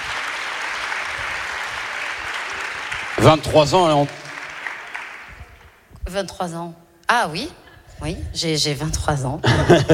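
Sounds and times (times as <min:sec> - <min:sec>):
audience applause: 0:00.0 - 0:05.8
speech: 0:03.2 - 0:04.2, 0:06.1 - 0:09.9
laughter: 0:09.4 - 0:09.9.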